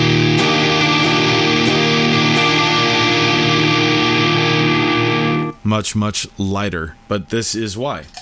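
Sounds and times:
electric guitar with heavy fuzz pedal: 0.0s - 5.6s
speech: 5.8s - 8.1s.

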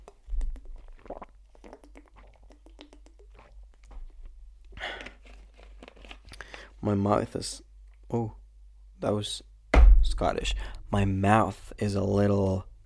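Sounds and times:
plastic water bottle being handled and opened: 4.7s - 6.7s
speech: 6.8s - 8.4s, 9.0s - 12.7s.

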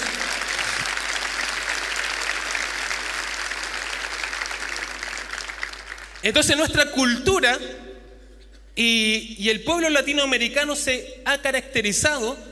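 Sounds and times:
audience applause: 0.0s - 6.2s
speech: 6.2s - 7.9s, 8.8s - 12.5s.

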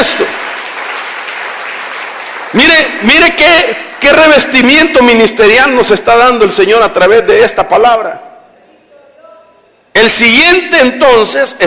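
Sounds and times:
audience clapping: 0.0s - 4.5s
speech: 2.5s - 8.3s, 10.0s - 11.6s.

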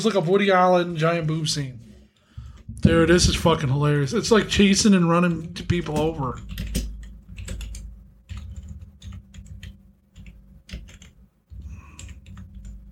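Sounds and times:
speech: 0.0s - 1.9s, 2.8s - 6.9s
rapid typing on a computer keyboard: 5.6s - 12.9s.

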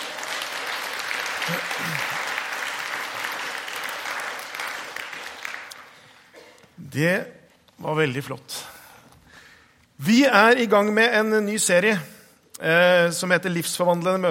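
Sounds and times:
audience applause: 0.0s - 6.3s
speech: 1.5s - 2.2s, 6.9s - 8.7s, 10.0s - 14.2s.

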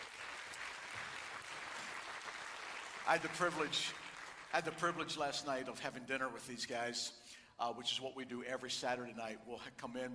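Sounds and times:
congregation applause for the worship team at a church service: 0.0s - 5.0s
speech: 3.1s - 10.1s.

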